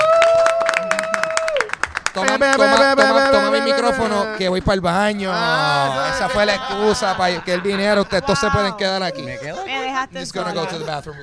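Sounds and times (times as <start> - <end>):
applause: 0.0 - 3.7
speech: 2.2 - 11.2
laughter: 5.2 - 11.2.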